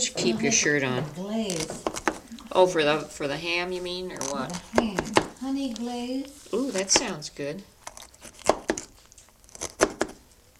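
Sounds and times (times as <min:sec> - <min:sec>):
speech: 0:00.2 - 0:07.7
knife cutting pineapple: 0:01.4 - 0:02.4, 0:04.0 - 0:07.2, 0:07.8 - 0:10.2.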